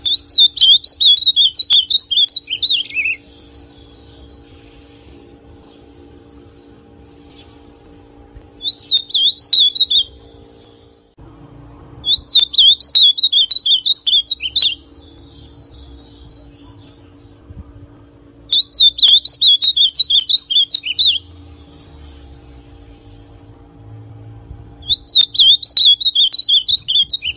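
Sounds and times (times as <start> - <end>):
ultramarine grosbeak song: 0.0 - 5.9, 8.5 - 11.0, 12.0 - 17.3, 18.5 - 22.4, 24.8 - 27.3.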